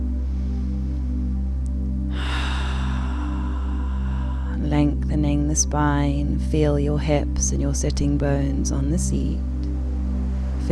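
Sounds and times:
steady low hum: 0.0s - 10.7s
deep breath in through the nose during guided meditation: 2.1s - 4.6s
big audible sigh: 2.1s - 4.8s
speech: 5.6s - 9.5s.

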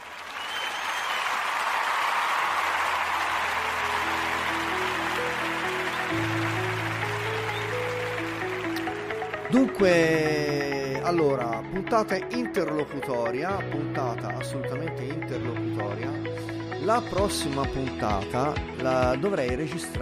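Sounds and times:
applause sound effect: 0.0s - 10.1s
low musical tone and simple melodic line: 2.9s - 19.2s
speech: 9.5s - 20.0s.

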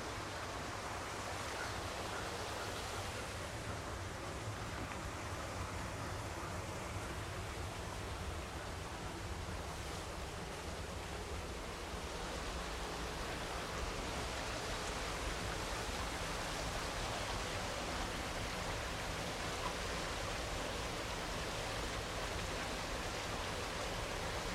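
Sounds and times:
water rushing through a sandstone creek canyon: 0.0s - 24.5s.

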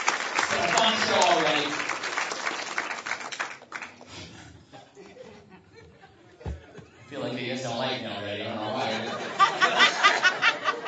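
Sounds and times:
audience applause for other comedians: 0.0s - 4.2s
speech: 0.6s - 1.8s
laughter: 4.7s - 7.2s, 8.5s - 10.8s.

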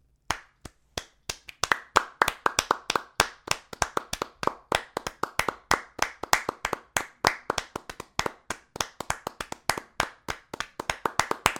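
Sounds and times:
sustained hand clapping: 0.3s - 11.5s.

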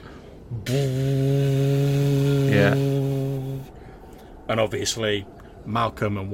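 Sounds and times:
ram's horn being blown: 0.6s - 3.8s
speech: 0.7s - 1.0s, 2.5s - 2.9s, 4.5s - 6.3s.

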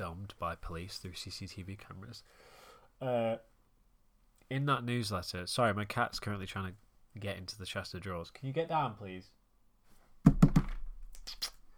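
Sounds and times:
speech: 0.1s - 3.5s, 4.5s - 9.4s
hammering on a desk: 10.3s - 10.7s.

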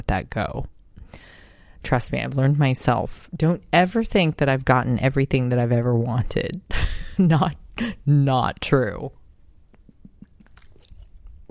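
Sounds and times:
speech: 0.1s - 1.2s, 1.8s - 9.2s
person taking a swig of water: 9.7s - 11.4s.

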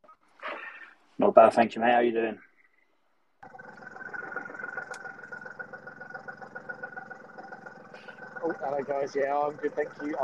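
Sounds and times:
speech: 1.2s - 2.5s, 8.4s - 10.2s
Gator utility vehicle engine running while driving: 3.4s - 10.2s.

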